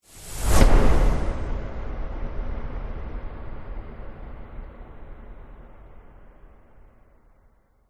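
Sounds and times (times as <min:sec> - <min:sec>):
whoosh: 0:00.0 - 0:02.6.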